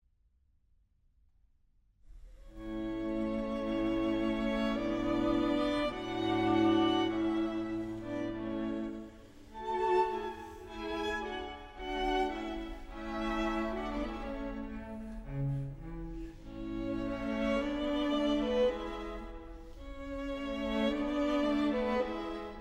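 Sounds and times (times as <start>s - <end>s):
string quartet playing an andante: 2.5s - 22.5s.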